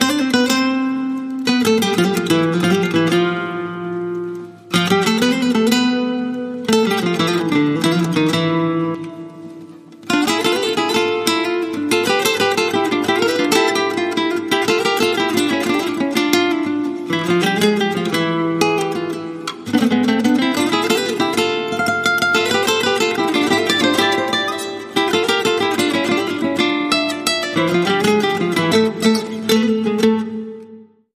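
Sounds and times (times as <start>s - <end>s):
guitar: 0.0s - 31.1s.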